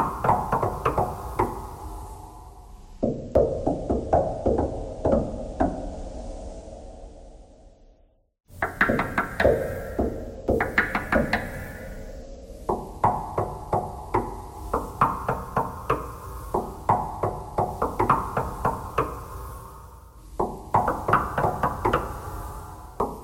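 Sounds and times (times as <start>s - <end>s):
knocking thread noise: 0.0s - 1.7s, 3.0s - 5.9s, 8.6s - 11.9s, 12.6s - 19.5s, 20.2s - 23.2s.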